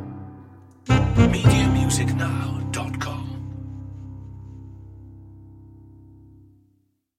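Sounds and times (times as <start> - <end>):
rhythmic dance music: 0.9 - 3.3.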